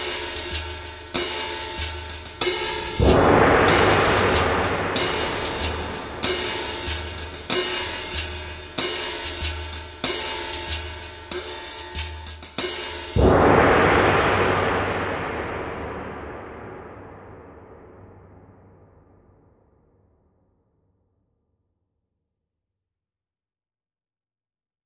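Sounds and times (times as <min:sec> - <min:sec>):
cymbals: 0:00.0 - 0:19.4.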